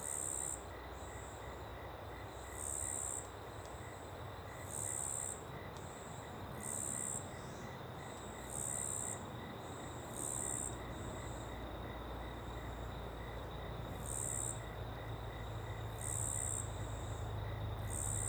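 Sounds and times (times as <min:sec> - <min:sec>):
cricket giving high bright trilling in a small open wood: 0:00.0 - 0:18.2.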